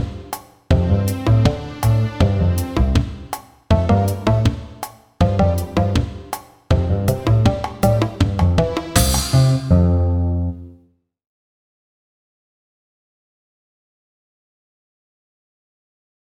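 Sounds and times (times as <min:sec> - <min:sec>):
karaoke backing track: 0:00.0 - 0:09.7.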